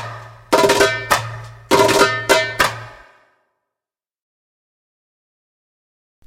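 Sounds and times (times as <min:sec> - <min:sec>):
djembe: 0:00.0 - 0:03.0.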